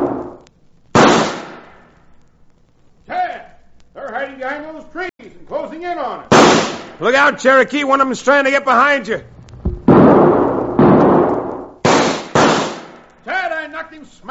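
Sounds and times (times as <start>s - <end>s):
speech: 4.2s - 5.1s, 5.8s - 6.3s, 7.0s - 9.3s
carbine gunshots in a shootout: 6.3s - 7.0s, 9.7s - 13.0s.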